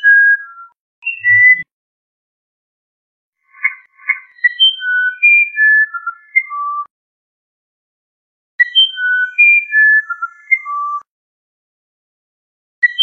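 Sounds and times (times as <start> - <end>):
musician wren whistling a phrase: 0.0 - 1.7, 3.5 - 6.9, 8.6 - 11.0.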